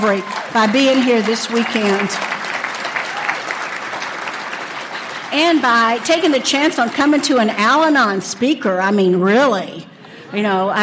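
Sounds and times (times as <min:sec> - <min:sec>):
speech: 0:00.0 - 0:02.4, 0:05.3 - 0:10.8
audience applause: 0:00.0 - 0:08.1.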